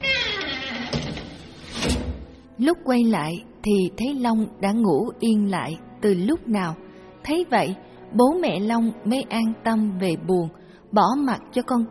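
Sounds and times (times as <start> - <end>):
door creaking: 0.0 - 2.4
speech: 2.6 - 11.8.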